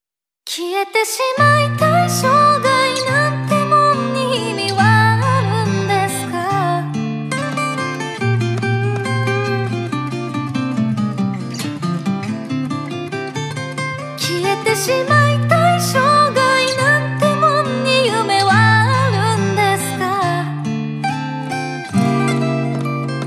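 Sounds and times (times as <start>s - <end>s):
guitar: 0.5s - 23.2s.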